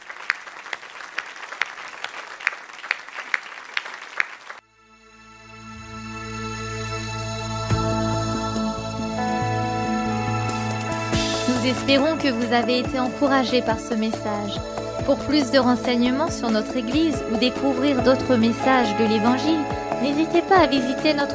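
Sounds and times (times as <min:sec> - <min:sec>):
church congregation clapping: 0:00.0 - 0:04.6
droning sustained music: 0:04.6 - 0:21.3
speech: 0:11.7 - 0:21.3.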